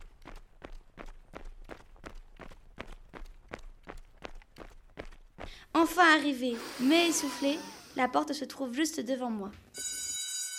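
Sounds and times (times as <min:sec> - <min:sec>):
running footsteps: 0:00.0 - 0:06.2
speech: 0:05.8 - 0:09.6.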